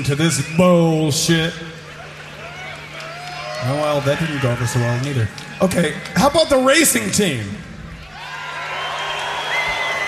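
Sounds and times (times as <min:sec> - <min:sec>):
speech: 0:00.0 - 0:01.8, 0:03.6 - 0:07.7
large crowd booing: 0:01.9 - 0:06.6, 0:07.9 - 0:10.0
higher shouts: 0:02.4 - 0:06.6, 0:08.1 - 0:10.0.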